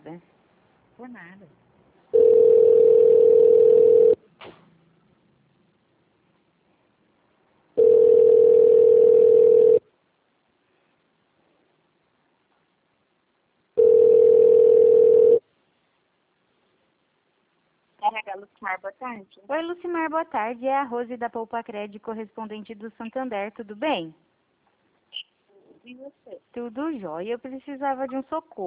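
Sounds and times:
speech: 0.1 - 0.3, 1.0 - 1.7, 18.8 - 24.3, 25.9 - 28.6
telephone line beeps during a call transfer: 2.2 - 4.2, 7.8 - 9.8, 13.8 - 15.4.

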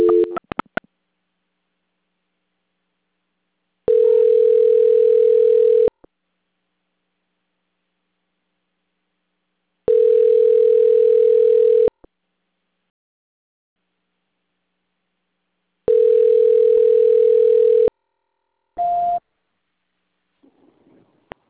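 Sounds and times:
telephone line beeps on hold during a call transfer: 0.0 - 0.4, 3.9 - 5.9, 9.9 - 11.9, 15.9 - 17.9.

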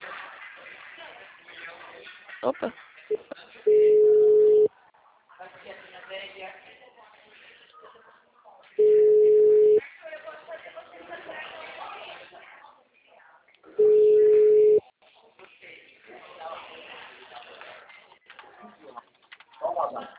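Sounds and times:
speech: 2.4 - 3.4
telephone busy tone after a dropped call: 3.7 - 4.7, 8.8 - 9.8, 13.8 - 14.8.

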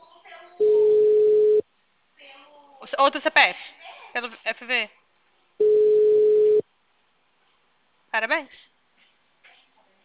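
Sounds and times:
telephone tone before voicemail: 0.6 - 1.6, 5.6 - 6.6
speech: 3.0 - 5.0, 8.2 - 8.6.

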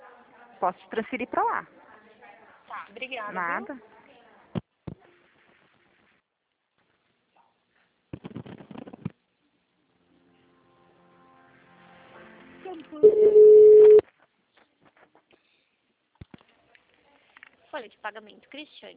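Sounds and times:
speech: 0.6 - 1.9, 2.9 - 3.9, 17.8 - 18.9
telephone ring-back tone on an office extension: 13.0 - 14.0.

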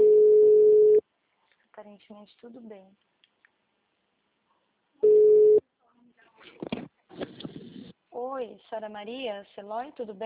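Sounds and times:
telephone busy tone after a dropped call: 0.0 - 1.0, 5.0 - 5.6
speech: 2.2 - 3.1, 8.2 - 10.2.

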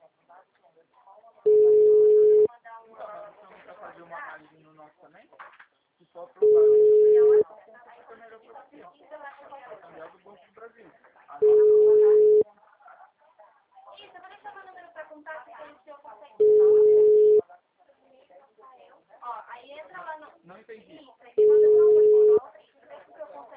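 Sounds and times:
telephone busy tone beeps after a dropped call: 1.5 - 2.5, 6.4 - 7.4, 11.4 - 12.4, 16.4 - 17.4, 21.4 - 22.4.

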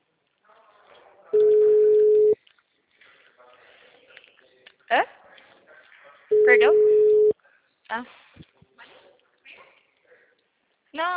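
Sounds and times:
telephone tone from a call that fails to connect: 1.4 - 2.4, 6.3 - 7.3
speech: 8.0 - 8.2.

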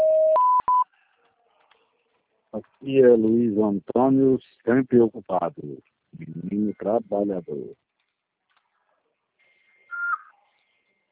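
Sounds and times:
voicemail beep tones after the phone greeting: 0.0 - 0.9, 9.8 - 10.4
speech: 2.6 - 7.9.

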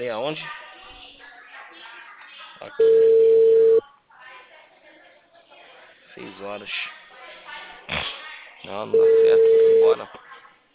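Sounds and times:
speech: 0.0 - 0.6, 2.6 - 3.1, 6.4 - 7.0, 8.7 - 10.2
faint hum: 2.6 - 3.9
telephone beep tone while placing a call: 2.8 - 3.8, 8.9 - 10.0.

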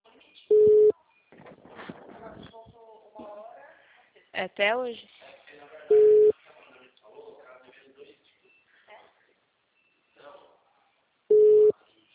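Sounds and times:
ringing tone of an unanswered telephone call: 0.5 - 0.9, 5.9 - 6.3, 11.3 - 11.7
speech: 4.4 - 5.2.

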